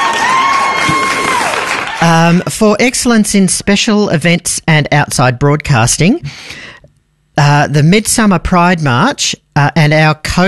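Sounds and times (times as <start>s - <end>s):
canned applause and cheering effect triggered from a button: 0.0s - 2.2s
speech: 2.0s - 6.7s, 7.4s - 10.4s.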